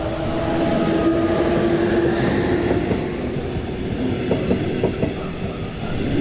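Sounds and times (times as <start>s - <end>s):
trains passing at a busy railway junction: 0.0s - 6.1s
train wheels clacking over track joints: 2.6s - 5.6s.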